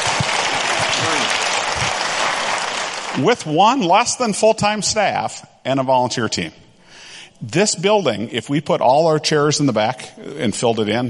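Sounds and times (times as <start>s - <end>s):
audience clapping: 0.0s - 4.0s
speech: 3.2s - 6.6s, 7.4s - 11.0s.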